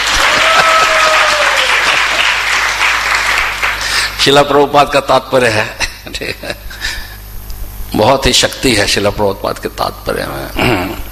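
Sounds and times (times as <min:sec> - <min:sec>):
audience clapping: 0:00.0 - 0:04.2
speech: 0:04.2 - 0:06.7, 0:07.9 - 0:11.0.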